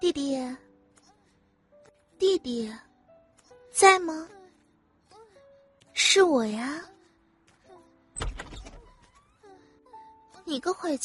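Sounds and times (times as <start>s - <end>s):
speech: 2.2s - 2.9s, 3.8s - 4.4s, 6.0s - 6.9s, 10.5s - 11.0s
door opening: 8.2s - 9.4s.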